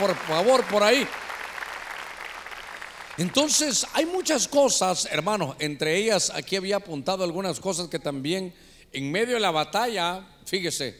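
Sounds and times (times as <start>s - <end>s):
audience clapping hands loudly: 0.0s - 4.3s
speech: 0.1s - 1.2s, 3.2s - 10.9s.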